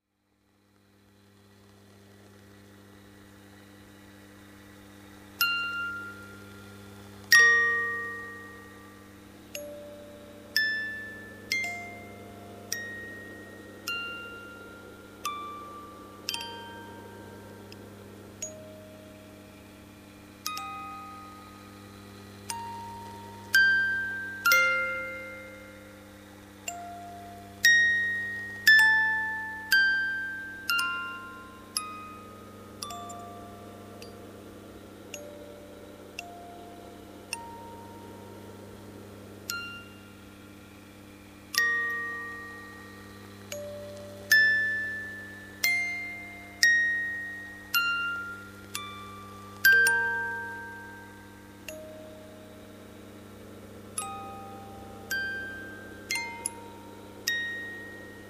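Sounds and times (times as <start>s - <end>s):
music box: 4.5s - 58.2s.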